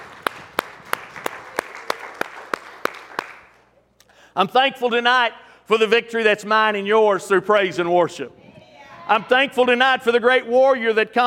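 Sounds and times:
audience clapping in unison: 0.0 - 3.7
speech: 4.4 - 8.4, 9.1 - 11.2.

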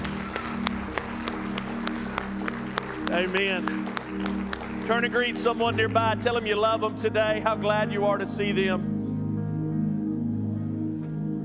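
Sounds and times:
crowd noise: 0.0 - 6.0
audience clapping in unison: 0.0 - 6.4
low sustained musical drone: 0.0 - 11.4
speech: 3.1 - 3.9, 4.9 - 8.9.

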